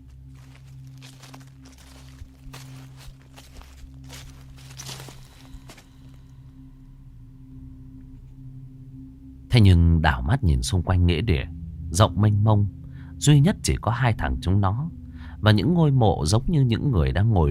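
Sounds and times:
rustling footsteps of many people walking around: 0:00.0 - 0:06.3
speech: 0:09.6 - 0:17.5.

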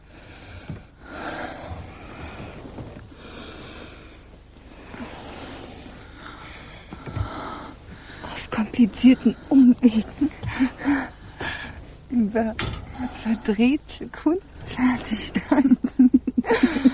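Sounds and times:
labored wheezing breathing: 0:00.0 - 0:12.0, 0:16.4 - 0:16.9
speech: 0:08.5 - 0:11.0, 0:12.2 - 0:15.8.

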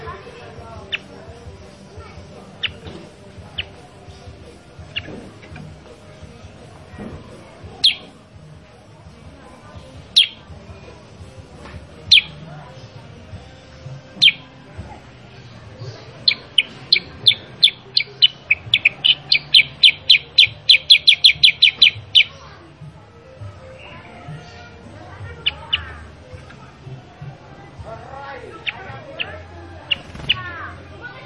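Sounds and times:
sooty-headed bulbul sharp descending calls: 0:00.8 - 0:05.8, 0:07.8 - 0:08.2, 0:10.0 - 0:10.5, 0:12.0 - 0:12.5, 0:14.2 - 0:14.6, 0:15.8 - 0:22.4, 0:25.2 - 0:26.5, 0:28.5 - 0:31.2.

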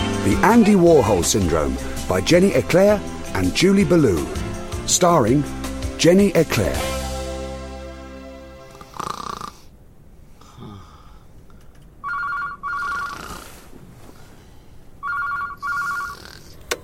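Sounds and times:
speech: 0:00.2 - 0:06.9
telephone ringing: 0:12.0 - 0:13.3, 0:15.0 - 0:16.2.

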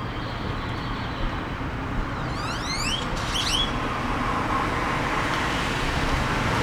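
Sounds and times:
grackle rising whistles in West Austin, Texas: 0:00.1 - 0:06.6.

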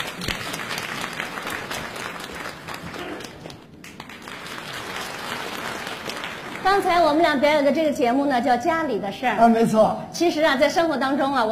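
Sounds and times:
crowd applauding a contestant at a Beijing variety show: 0:00.0 - 0:07.0
speech: 0:06.6 - 0:11.5.

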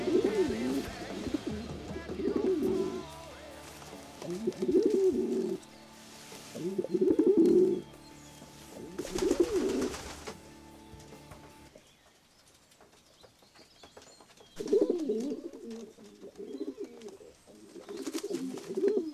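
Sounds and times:
pigeon cooing: 0:00.0 - 0:03.1, 0:04.2 - 0:05.6, 0:06.5 - 0:07.8, 0:08.7 - 0:10.4, 0:14.6 - 0:19.1.

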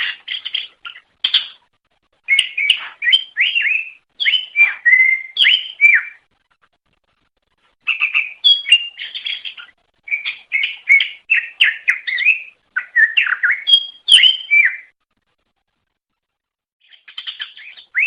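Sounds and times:
leafbird chattering whistled song: 0:00.0 - 0:01.6, 0:02.3 - 0:06.2, 0:07.9 - 0:14.9, 0:16.8 - 0:18.0.

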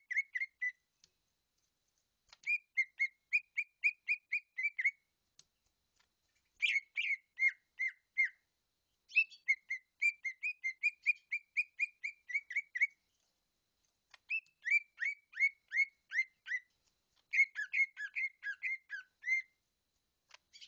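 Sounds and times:
leafbird song of whistled phrases: 0:00.0 - 0:00.8, 0:02.4 - 0:05.0, 0:06.6 - 0:08.4, 0:09.1 - 0:13.0, 0:14.1 - 0:16.7, 0:17.3 - 0:19.6.

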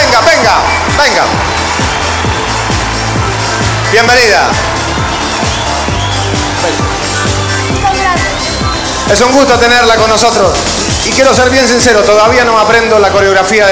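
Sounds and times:
audience applause: 0:00.0 - 0:10.3
speech: 0:04.0 - 0:04.7, 0:09.1 - 0:13.7.

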